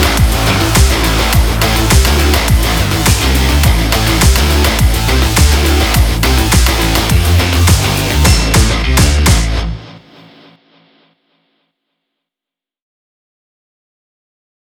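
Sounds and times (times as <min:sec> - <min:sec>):
aggressive sport background music: 0:00.0 - 0:10.4.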